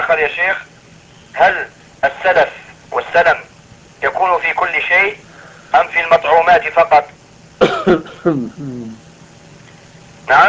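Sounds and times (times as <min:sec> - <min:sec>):
speech: 0:00.1 - 0:00.7, 0:01.3 - 0:09.0, 0:10.3 - 0:10.4
lower drawn-out voiced throat clearing: 0:07.6 - 0:09.0
person coughing: 0:07.6 - 0:09.0.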